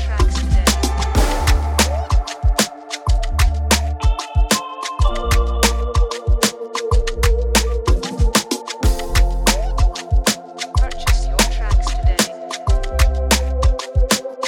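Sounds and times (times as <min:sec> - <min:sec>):
romance Afrobeat music in B minor: 0:00.0 - 0:14.4.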